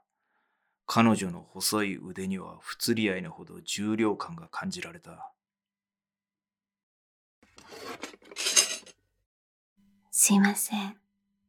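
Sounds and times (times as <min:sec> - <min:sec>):
speech: 0:00.9 - 0:05.4, 0:10.2 - 0:11.0
scissors placed gently on a table: 0:07.6 - 0:08.9.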